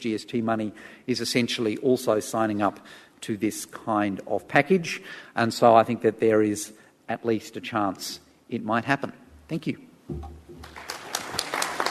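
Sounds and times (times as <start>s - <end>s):
speech: 0.0s - 10.8s
polite audience clapping: 10.6s - 11.8s.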